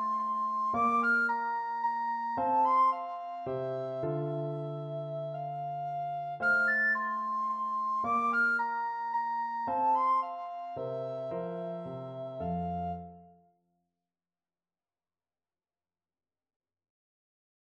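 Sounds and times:
recorder playing a minuet: 0:00.0 - 0:13.1.

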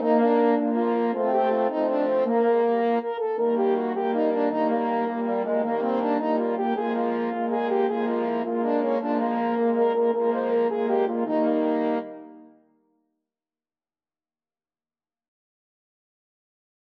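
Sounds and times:
French horn quartet: 0:00.0 - 0:12.5.

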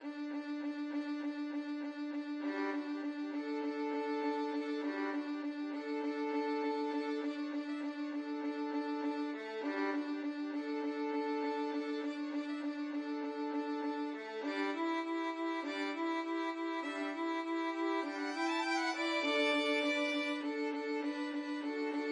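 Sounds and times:
violin duet: 0:00.0 - 0:22.1.

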